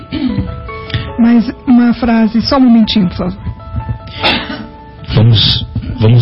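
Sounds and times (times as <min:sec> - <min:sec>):
speech: 0:01.2 - 0:04.4, 0:05.1 - 0:06.2
sneeze or cough: 0:04.2 - 0:04.7.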